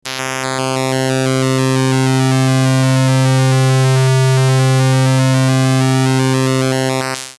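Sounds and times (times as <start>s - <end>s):
modulated square wave: 0.0s - 7.3s.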